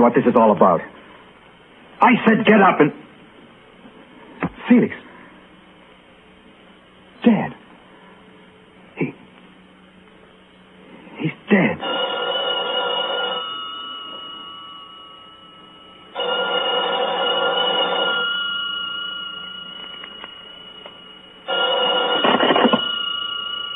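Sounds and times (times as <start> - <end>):
speech: 0.0 - 1.0, 2.0 - 3.0, 4.7 - 5.0, 7.2 - 7.6, 9.0 - 9.2, 11.2 - 12.0
telephone ringing: 11.8 - 23.7.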